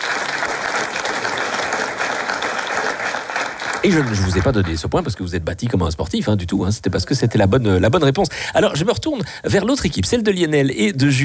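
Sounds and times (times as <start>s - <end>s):
applause: 0.0s - 5.2s
speech: 3.8s - 11.2s.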